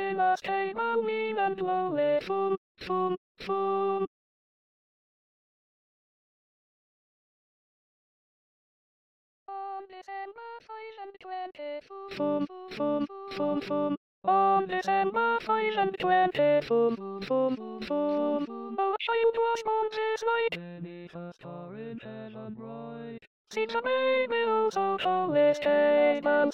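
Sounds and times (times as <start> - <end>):
alto voice singing an SATB choral part: 0.0 - 4.1, 9.5 - 26.5.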